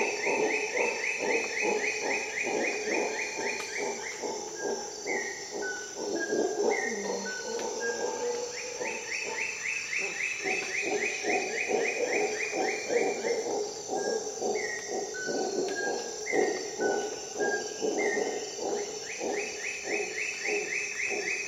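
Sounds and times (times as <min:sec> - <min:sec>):
constant insect drone: 0:00.0 - 0:21.4
howler monkey roaring: 0:00.0 - 0:21.4.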